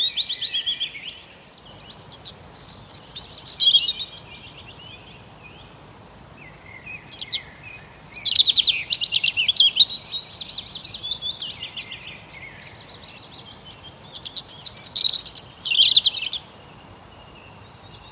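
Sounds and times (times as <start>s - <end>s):
several birds singing on an early spring morning: 0.0s - 18.1s.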